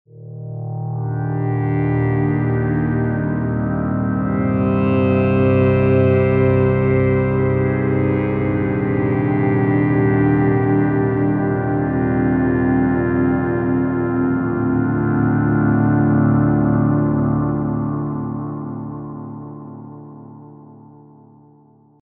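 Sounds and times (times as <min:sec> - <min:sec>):
synth pad: 0:00.1 - 0:21.4.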